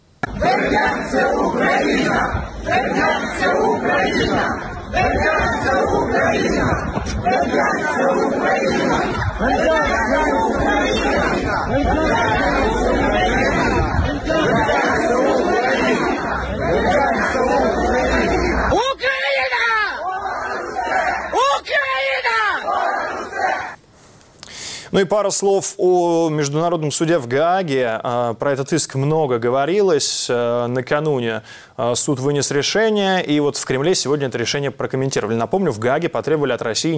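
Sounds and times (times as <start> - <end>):
crowd of protesters shouting: 0.2 - 23.8
speech: 0.6 - 14.9, 25.0 - 36.9.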